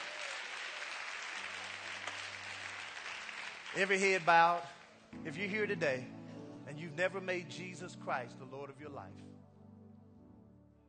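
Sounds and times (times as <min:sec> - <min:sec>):
church audience hand clapping: 0:00.0 - 0:05.1
speech: 0:03.7 - 0:09.5.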